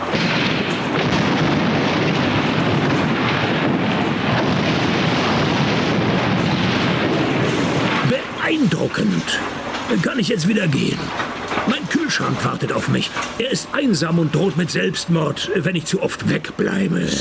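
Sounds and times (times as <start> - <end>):
demolition blast bringing down a chimney and a house: 0.0 - 17.1
speech: 9.2 - 17.1.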